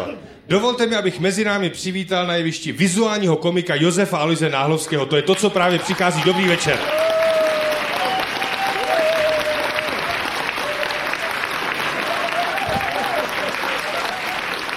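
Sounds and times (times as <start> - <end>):
speech: 0.0 - 7.3
audience applause: 5.3 - 14.7.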